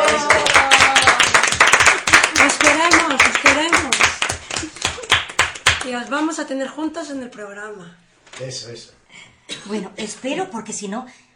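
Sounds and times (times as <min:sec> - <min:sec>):
audience applause: 0:00.0 - 0:05.9
speech: 0:06.0 - 0:11.2.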